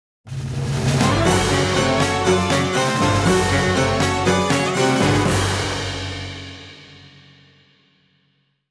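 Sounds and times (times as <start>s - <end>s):
national anthem music: 1.0s - 6.9s.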